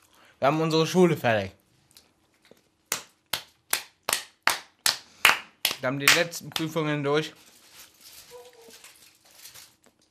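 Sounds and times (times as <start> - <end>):
speech: 0.4 - 1.6, 5.8 - 7.5
applause: 3.7 - 6.6.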